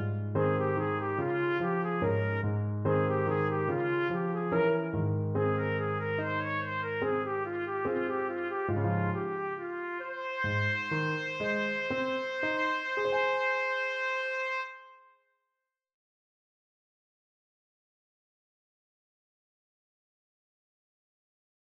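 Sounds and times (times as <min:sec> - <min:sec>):
trumpet duet: 0:00.0 - 0:15.1.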